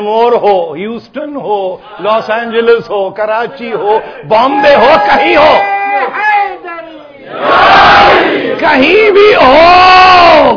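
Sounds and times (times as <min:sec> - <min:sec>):
speech: 0:00.0 - 0:06.6, 0:07.4 - 0:10.5
crowd at a religious gathering shouting a religious slogan: 0:07.2 - 0:08.9.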